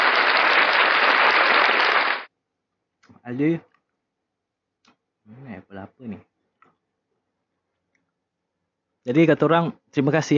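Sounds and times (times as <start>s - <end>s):
audience clapping: 0.0s - 2.3s
speech: 3.3s - 3.7s, 5.3s - 6.3s, 9.0s - 10.3s.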